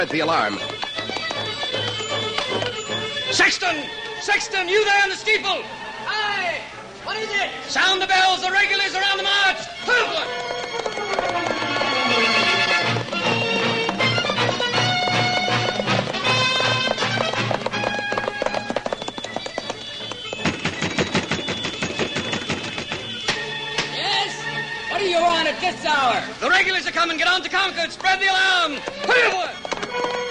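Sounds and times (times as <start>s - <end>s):
speech: 0.0s - 0.8s, 2.2s - 10.7s, 25.6s - 30.2s
horse hooves galloping: 0.0s - 5.1s, 7.8s - 24.0s, 24.6s - 30.2s
loud busy orchestral score: 0.0s - 18.3s, 19.8s - 30.2s.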